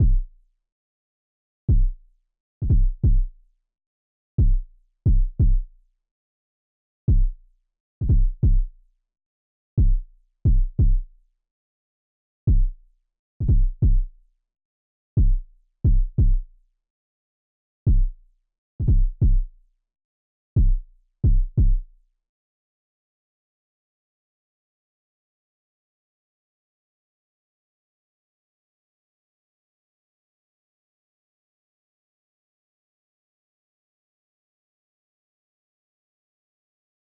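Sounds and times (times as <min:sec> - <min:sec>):
kick drum: 0:00.0 - 0:00.4, 0:01.7 - 0:02.0, 0:02.6 - 0:03.4, 0:04.4 - 0:05.7, 0:07.1 - 0:07.4, 0:08.0 - 0:08.7, 0:09.8 - 0:11.1, 0:12.5 - 0:12.8, 0:13.4 - 0:14.1, 0:15.2 - 0:16.5, 0:17.9 - 0:18.2, 0:18.8 - 0:19.5, 0:20.6 - 0:21.9.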